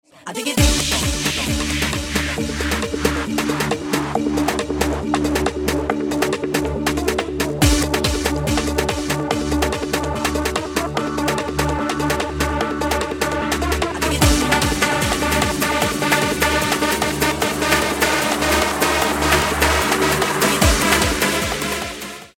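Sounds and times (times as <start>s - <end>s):
music beat: 0.6s - 22.3s.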